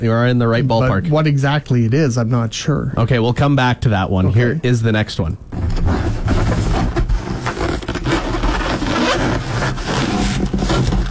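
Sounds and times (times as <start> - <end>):
speech: 0.0 - 6.2
balloon: 5.5 - 11.0.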